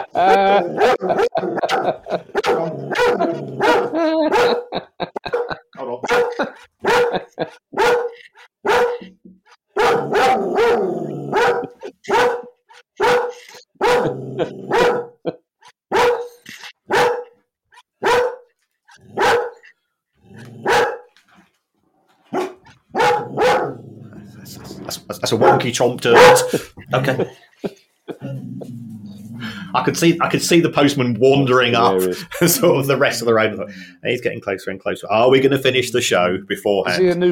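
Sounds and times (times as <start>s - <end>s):
speech: 0.0s - 4.6s, 25.7s - 27.4s, 29.8s - 37.3s
laughter: 0.0s - 8.5s, 11.6s - 12.2s, 13.3s - 15.4s, 24.2s - 28.8s, 29.4s - 33.9s
dog barking at a knock on the door: 0.8s - 9.1s, 9.8s - 15.3s, 15.9s - 18.5s, 19.1s - 19.7s, 20.6s - 21.1s, 22.3s - 23.8s, 25.3s - 26.6s.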